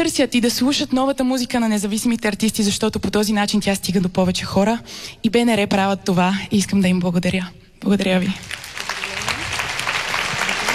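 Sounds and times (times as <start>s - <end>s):
speech: 0.0s - 8.7s
audience applause after a pop singer's speech: 8.4s - 10.7s.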